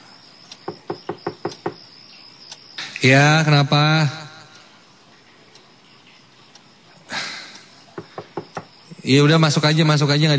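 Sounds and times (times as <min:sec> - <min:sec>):
knocking on a bedroom door: 0:00.6 - 0:01.8, 0:08.0 - 0:08.7
speech: 0:03.0 - 0:04.2, 0:09.1 - 0:10.3.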